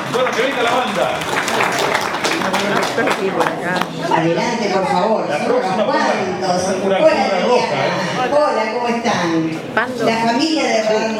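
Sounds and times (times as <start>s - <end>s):
audience applause: 0.0s - 4.0s
speech: 2.6s - 11.1s.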